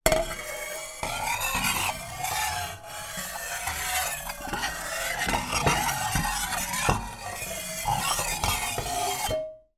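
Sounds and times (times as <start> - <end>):
pan scraping metal on metal on stove hob: 0.1 - 9.4.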